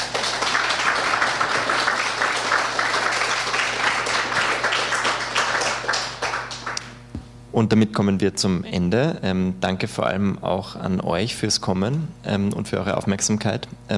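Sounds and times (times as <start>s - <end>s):
audience applause: 0.0s - 6.9s
speech: 7.6s - 13.9s.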